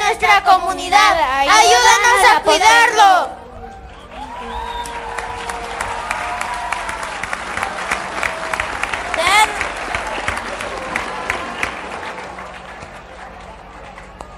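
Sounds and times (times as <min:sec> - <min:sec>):
speech: 0:00.2 - 0:03.4
audience applause: 0:03.6 - 0:14.3.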